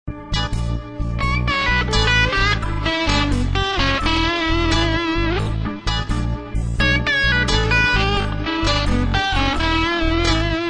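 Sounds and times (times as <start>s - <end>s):
blues music: 0.1s - 10.6s.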